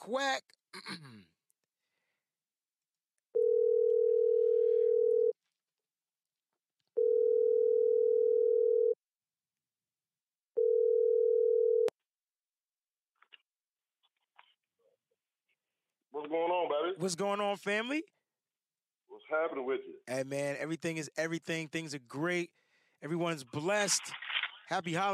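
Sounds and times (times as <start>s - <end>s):
speech: 0.0s - 1.4s, 16.3s - 18.2s, 19.2s - 25.1s
breath: 1.8s - 2.3s, 4.6s - 5.1s, 22.5s - 23.0s
phone line ringing: 3.4s - 5.4s, 7.0s - 9.0s, 10.6s - 11.9s.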